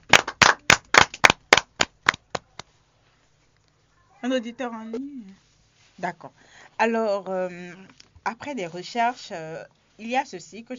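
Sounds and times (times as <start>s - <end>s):
audience clapping: 0.0s - 2.7s
speech: 4.2s - 10.7s.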